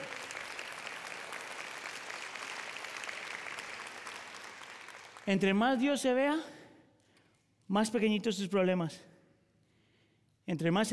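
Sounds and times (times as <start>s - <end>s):
audience applauding: 0.0s - 5.4s
speech: 5.3s - 6.6s, 7.7s - 9.1s, 10.5s - 10.9s.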